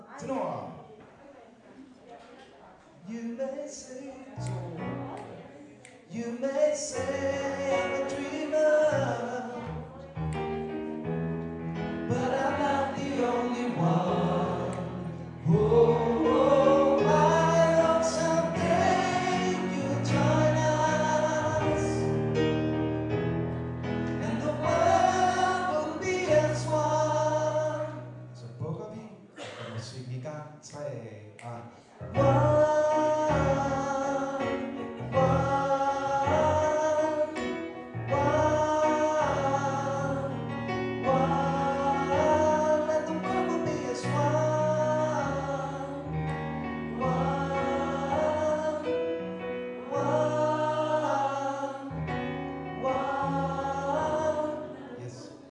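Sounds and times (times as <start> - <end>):
tenor singing: 3.0 - 29.6, 30.7 - 55.4
choir singing: 12.0 - 22.6, 23.3 - 28.1, 32.2 - 40.4, 41.0 - 46.2, 46.8 - 55.4.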